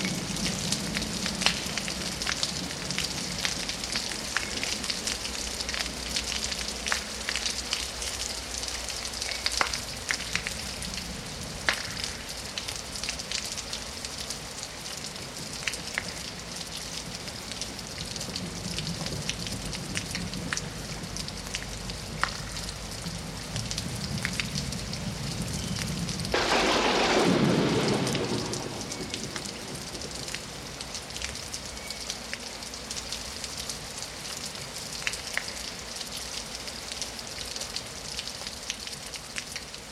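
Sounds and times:
light and heavy rain: 0:00.0 - 0:39.9
thunder: 0:26.3 - 0:30.6.

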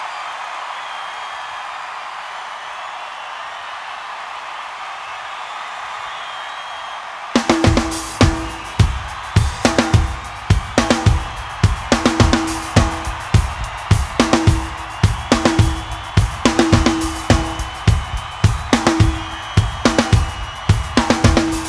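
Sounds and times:
drum medley: 0:07.4 - 0:21.6.

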